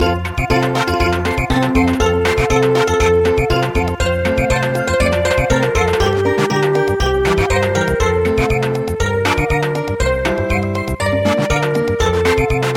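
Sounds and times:
samba music: 0:00.5 - 0:12.7.

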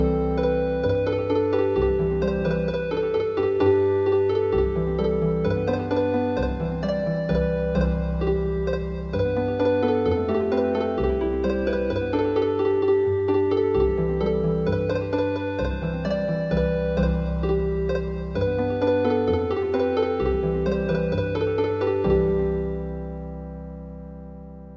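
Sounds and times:
healing harp music: 0:00.0 - 0:24.7.

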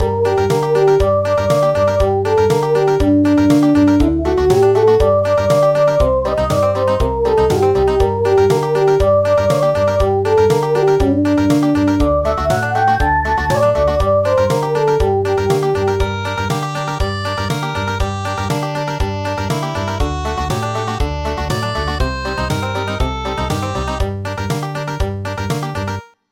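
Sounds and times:
country music: 0:00.0 - 0:26.0.

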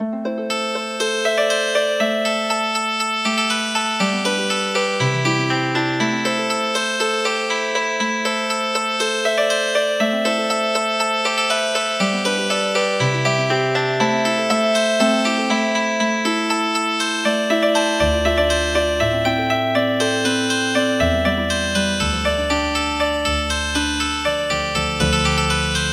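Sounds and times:
healing harp music: 0:00.0 - 0:25.9.

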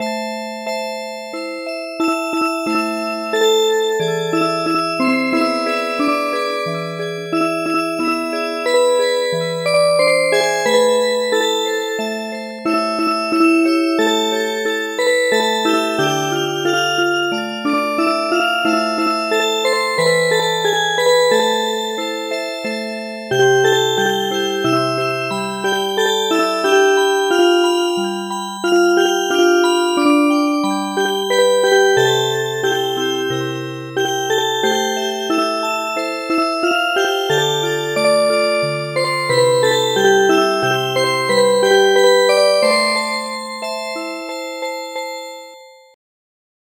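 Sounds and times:
music box: 0:00.0 - 0:46.0.

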